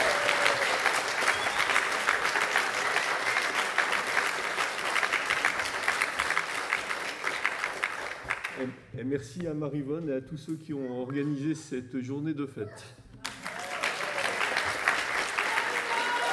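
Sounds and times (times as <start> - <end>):
audience applause: 0.0 - 8.6, 13.2 - 16.3
speech: 9.1 - 13.0.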